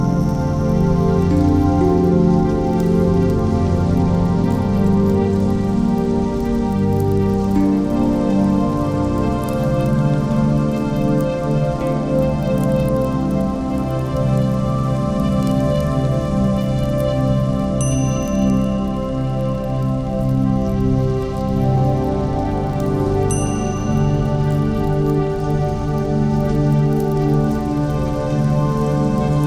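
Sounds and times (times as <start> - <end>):
ambient meditation soundscape of a Japanese water garden: 0.0 - 29.4.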